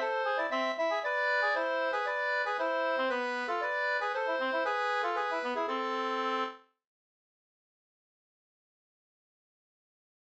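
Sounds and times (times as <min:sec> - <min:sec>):
polska dance tune: 0:00.0 - 0:06.6.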